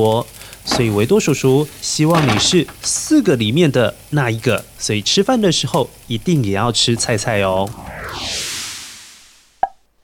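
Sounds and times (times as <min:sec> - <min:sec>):
speech: 0:00.0 - 0:08.4
whoosh: 0:06.8 - 0:09.7.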